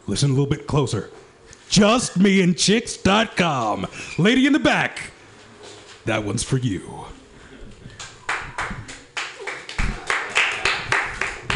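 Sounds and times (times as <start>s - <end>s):
speech: 0.1s - 5.2s, 6.0s - 7.2s
scattered applause from a small audience: 8.0s - 11.5s.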